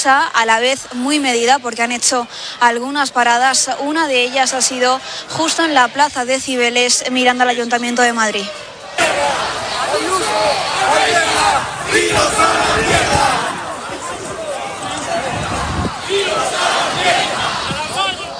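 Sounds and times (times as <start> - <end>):
speech: 0.0 - 13.4
protest crowd shouting against government: 8.4 - 18.3.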